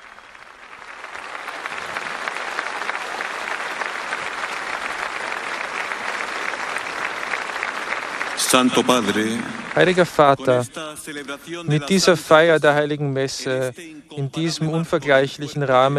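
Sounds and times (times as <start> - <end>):
thunderous applause: 0.0 - 10.8
speech: 8.5 - 15.9.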